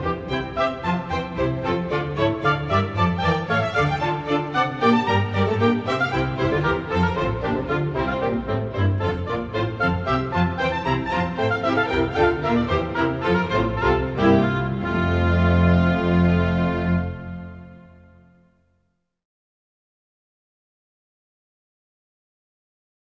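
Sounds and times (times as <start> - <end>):
baroque dance piece: 0.0 - 18.5.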